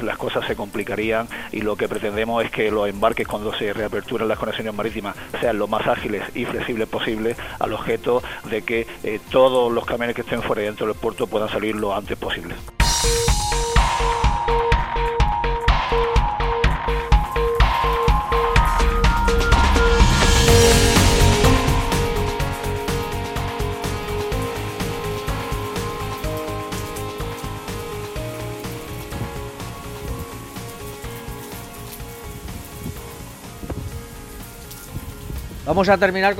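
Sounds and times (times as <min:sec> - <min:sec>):
speech: 0:00.0 - 0:13.2, 0:35.7 - 0:36.3
steady rain hissing and pattering: 0:00.0 - 0:36.3
strong westerly Poniente gale gusting: 0:17.9 - 0:25.7, 0:28.2 - 0:30.8, 0:32.2 - 0:35.8.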